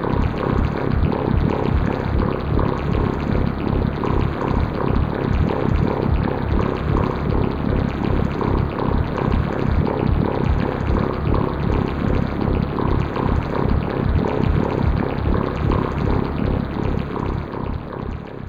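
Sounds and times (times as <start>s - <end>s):
radiation accelerator machine gurgle and pulse: 0.0s - 18.3s.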